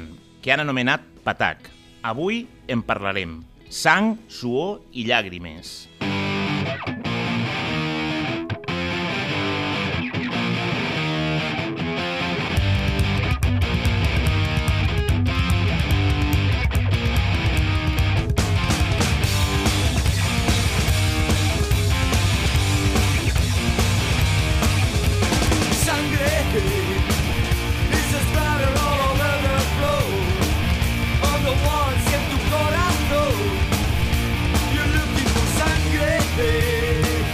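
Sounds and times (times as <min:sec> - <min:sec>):
distorted punk hardcore guitars: 0:00.0 - 0:37.3
speech: 0:00.4 - 0:05.9
heavy punk hardcore drums and bass: 0:12.4 - 0:37.3.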